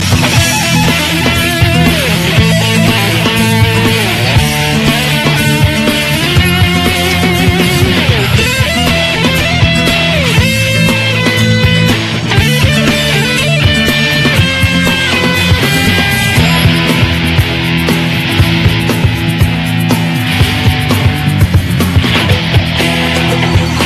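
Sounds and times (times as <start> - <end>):
guitar tune: 0.0 - 23.8.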